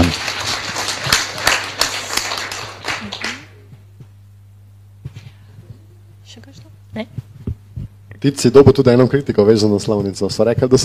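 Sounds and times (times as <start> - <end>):
applause: 0.0 - 3.6
speech: 8.2 - 10.8.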